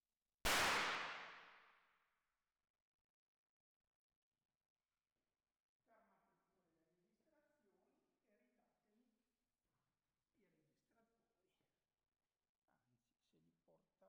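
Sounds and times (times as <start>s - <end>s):
firecrackers: 0.5s - 1.7s.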